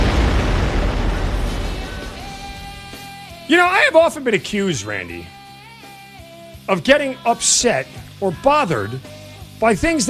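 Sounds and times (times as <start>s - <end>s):
mountain eruption explosion sound effect: 0.0s - 3.5s
speech: 3.5s - 5.4s, 6.7s - 10.0s.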